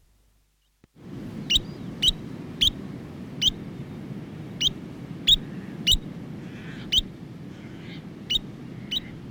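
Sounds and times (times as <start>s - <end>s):
New Zealand dotterel giving clipped high chirps: 1.4s - 2.8s, 3.4s - 3.6s, 4.6s - 6.1s, 6.9s - 7.1s, 8.3s - 9.1s.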